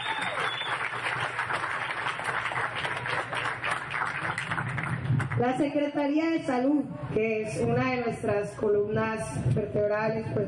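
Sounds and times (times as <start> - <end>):
audience applause: 0.0 - 5.4
speech: 5.4 - 10.4.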